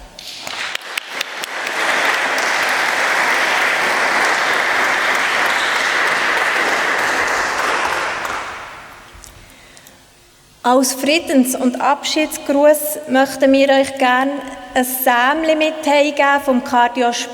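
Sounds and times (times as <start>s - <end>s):
audience applause: 0.0s - 9.1s
speech: 10.7s - 17.3s.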